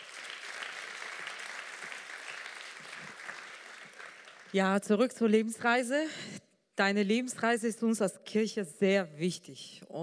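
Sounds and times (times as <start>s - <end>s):
crowd applause: 0.0s - 4.6s
speech: 4.5s - 10.0s.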